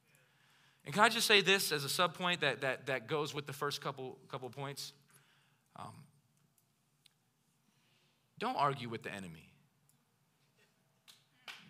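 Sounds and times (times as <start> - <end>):
speech: 0.8 - 5.0, 5.8 - 6.1, 8.4 - 9.5
lone audience member clapping: 11.1 - 11.6.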